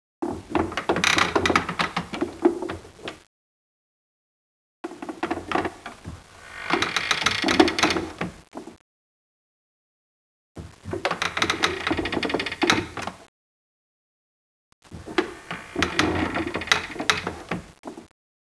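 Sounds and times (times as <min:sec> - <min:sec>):
creak: 0:00.8 - 0:03.2, 0:04.9 - 0:08.7, 0:11.0 - 0:13.2, 0:15.0 - 0:18.1.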